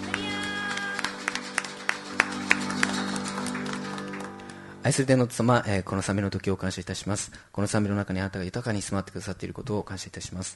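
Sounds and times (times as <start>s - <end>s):
audience applause: 0.0s - 4.8s
speech: 4.8s - 10.5s.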